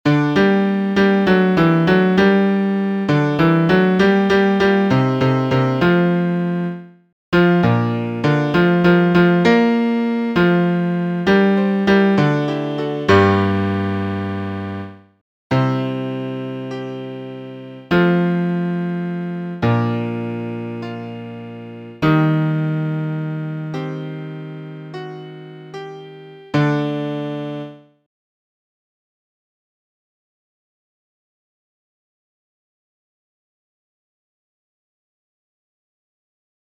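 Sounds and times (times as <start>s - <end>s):
piano: 0.1s - 28.0s.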